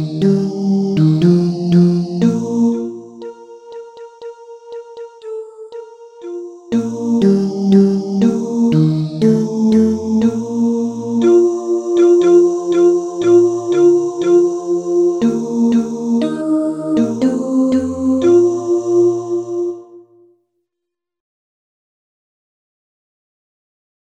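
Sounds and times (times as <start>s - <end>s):
tenor singing: 0.0s - 3.3s, 6.2s - 20.0s.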